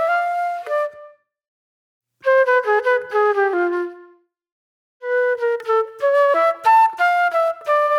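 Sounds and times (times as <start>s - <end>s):
reflective flute music: 0.0s - 1.3s, 2.2s - 4.3s, 5.0s - 7.9s.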